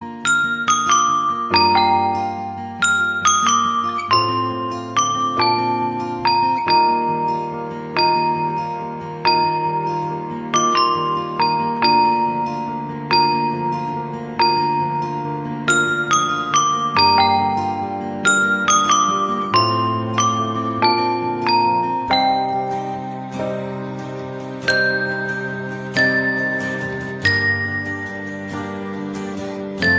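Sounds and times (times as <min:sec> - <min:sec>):
chimes: 0:00.0 - 0:29.9.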